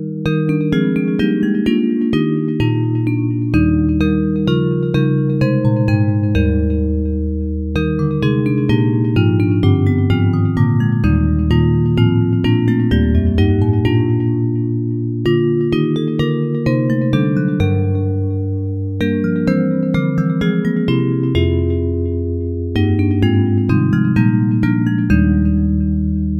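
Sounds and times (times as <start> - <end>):
bells: 0.2 - 26.3.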